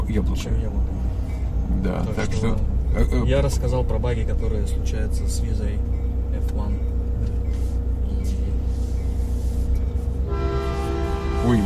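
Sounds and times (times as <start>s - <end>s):
electric commuter trains humming: 0.0s - 11.6s
speech: 0.1s - 7.4s, 11.4s - 11.6s.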